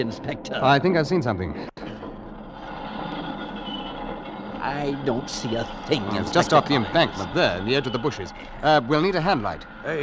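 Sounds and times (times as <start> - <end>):
speech: 0.0 - 1.7, 4.7 - 10.0
train rumbling along the rails: 2.0 - 10.0.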